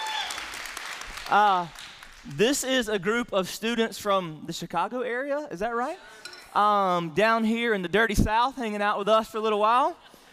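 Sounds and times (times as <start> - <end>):
whooping cheer: 0.0 - 0.6
crowd clapping: 0.0 - 2.5
speech: 1.3 - 10.1.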